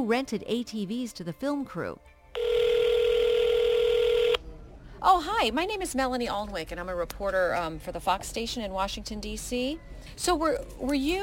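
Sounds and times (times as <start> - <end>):
speech: 0.0 - 2.2, 5.0 - 11.2
telephone tone: 2.4 - 4.4.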